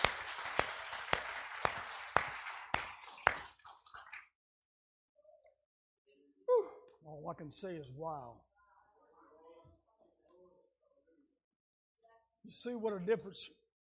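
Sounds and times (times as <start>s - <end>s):
crowd clapping rhythmically in praise: 0.0s - 4.3s
speech: 7.1s - 8.5s, 12.4s - 13.6s.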